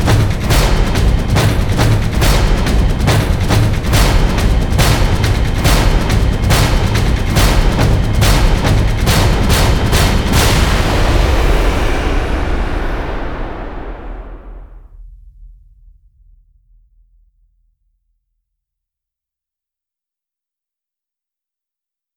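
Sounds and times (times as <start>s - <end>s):
drums: 0.0s - 17.1s.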